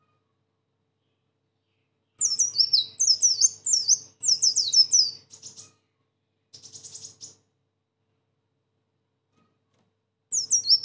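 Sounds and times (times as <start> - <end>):
sunbird singing a high-pitched twittering song: 1.0 - 5.8, 6.5 - 7.5, 10.3 - 10.8.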